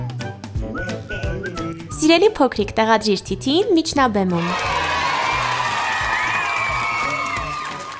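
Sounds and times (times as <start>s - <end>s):
speech: 2.0s - 4.7s
audience applause and whooping as a character appears on stage: 4.4s - 7.9s.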